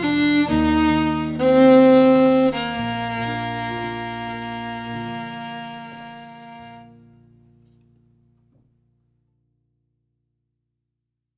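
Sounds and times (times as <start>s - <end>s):
fiddle: 0.0s - 7.3s
piano: 0.0s - 8.9s.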